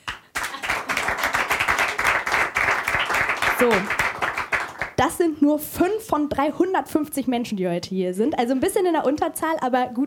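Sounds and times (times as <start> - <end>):
audience clapping: 0.0 - 5.1
speech: 3.6 - 4.0, 5.0 - 10.0.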